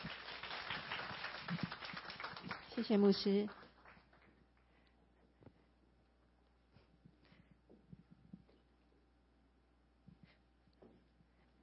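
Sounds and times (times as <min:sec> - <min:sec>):
audience clapping in welcome: 0:00.0 - 0:04.4
speech: 0:02.8 - 0:03.6.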